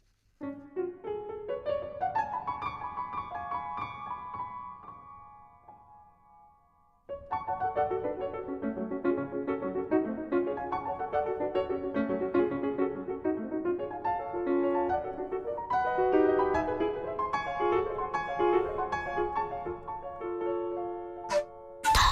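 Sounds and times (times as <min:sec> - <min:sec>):
lively piano piece: 0:00.4 - 0:22.0.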